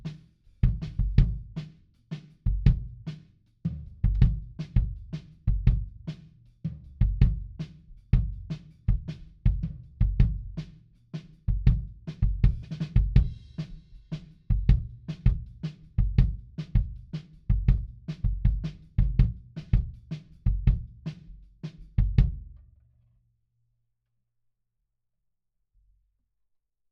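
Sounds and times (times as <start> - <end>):
kick drum: 0.6 - 1.6, 2.5 - 3.0, 3.7 - 6.0, 7.0 - 7.6, 8.2 - 10.6, 11.5 - 13.5, 14.5 - 21.0, 22.0 - 22.6.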